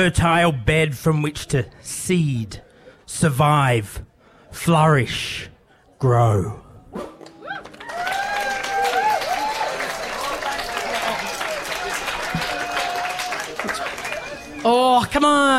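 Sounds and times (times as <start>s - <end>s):
speech: 0.0s - 7.1s, 14.6s - 15.5s
audience clapping: 7.2s - 15.4s.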